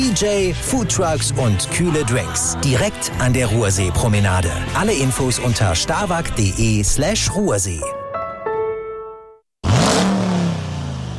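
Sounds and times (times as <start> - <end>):
speech: 0.1 - 8.0
2026 Dodge Ram V8 pickup truck engine revving: 9.6 - 11.1.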